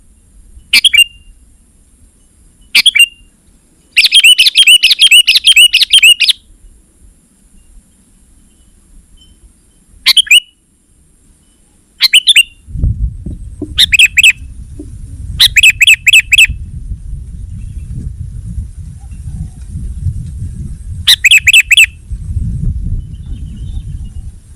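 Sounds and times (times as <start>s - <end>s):
sooty-headed bulbul calls: 0.7s - 1.4s, 2.7s - 3.3s, 3.9s - 6.4s, 10.0s - 10.6s, 11.6s - 12.7s, 13.6s - 16.6s, 21.1s - 22.0s.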